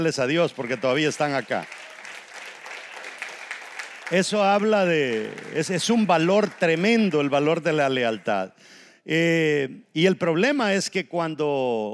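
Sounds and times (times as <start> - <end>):
speech: 0.0 - 1.8, 4.1 - 11.9
crowd applause: 0.4 - 8.3.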